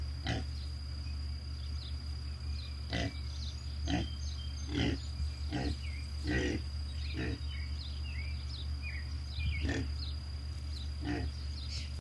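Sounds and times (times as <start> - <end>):
steady low hum: 0.0 - 11.9
pig grunting: 0.2 - 0.5, 2.9 - 3.2, 3.8 - 7.5, 9.6 - 10.0, 11.0 - 11.3.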